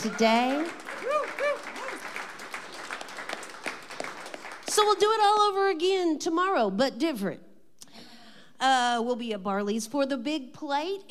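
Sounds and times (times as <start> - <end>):
speech: 0.0 - 1.5, 4.8 - 7.5, 8.6 - 11.0
audience applause: 0.0 - 4.8.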